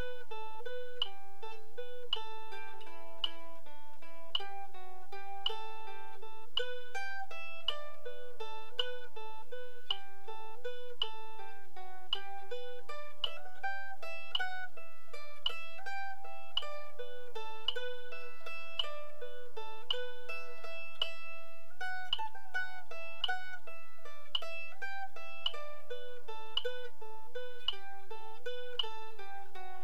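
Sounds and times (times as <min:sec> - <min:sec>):
mandolin tune: 0:00.0 - 0:29.8.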